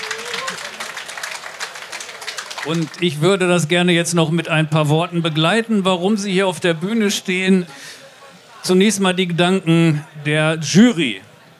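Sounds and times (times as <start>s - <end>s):
audience applause for a limerick prize winner at an award ceremony: 0.0s - 3.8s
speech: 2.6s - 7.9s, 8.6s - 11.3s.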